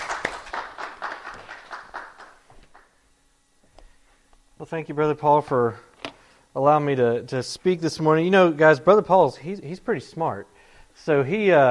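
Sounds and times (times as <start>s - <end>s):
audience applause: 0.0s - 2.9s
speech: 4.6s - 5.9s, 6.6s - 11.6s.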